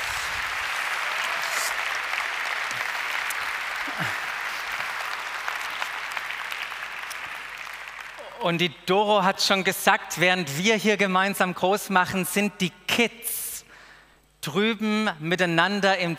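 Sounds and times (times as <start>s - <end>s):
audience applause: 0.0s - 8.4s
speech: 8.4s - 13.4s, 14.4s - 16.1s.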